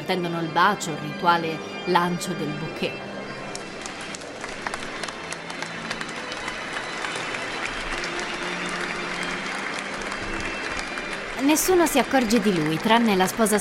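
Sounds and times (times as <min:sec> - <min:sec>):
speech: 0:00.1 - 0:03.1, 0:11.4 - 0:13.5
wedding guests applauding: 0:03.1 - 0:13.5.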